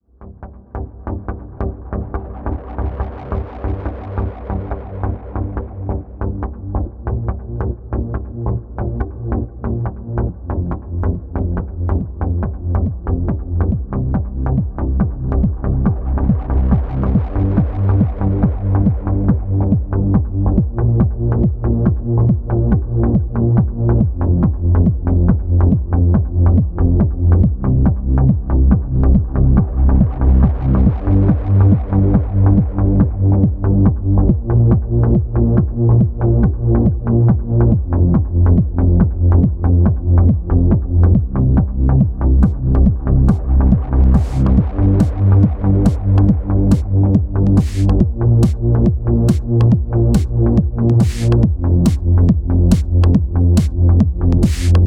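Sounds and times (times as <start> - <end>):
electro trance music: 0.2 - 54.8.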